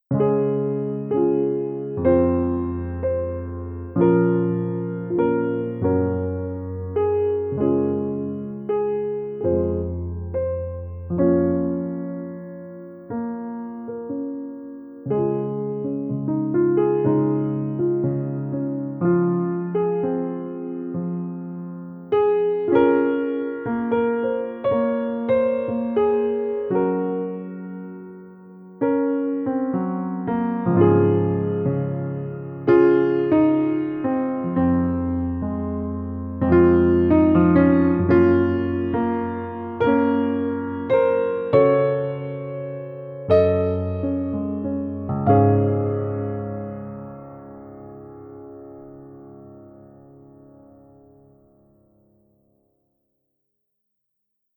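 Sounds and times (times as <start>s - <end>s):
solo piano: 0.0s - 53.8s.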